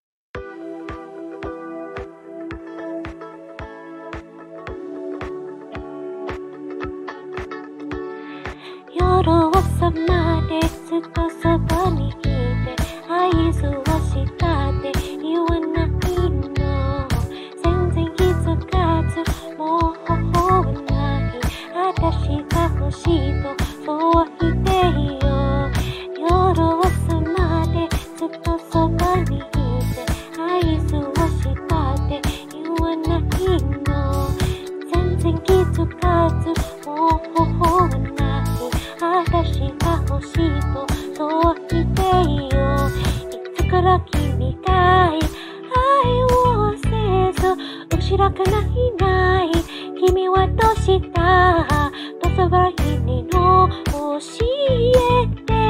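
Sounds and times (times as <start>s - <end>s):
person singing in Japanese: 8.6s - 55.6s.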